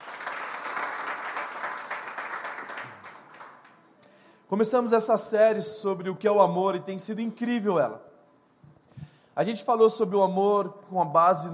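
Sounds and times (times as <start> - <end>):
audience applause: 0.0 - 3.8
speech: 4.5 - 8.1, 9.4 - 11.5.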